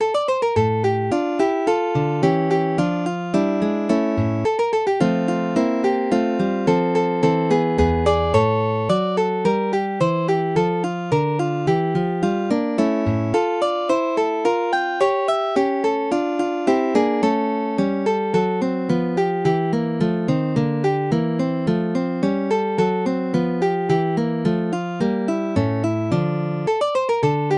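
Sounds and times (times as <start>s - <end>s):
guitar prelude in D minor: 0.0s - 27.5s.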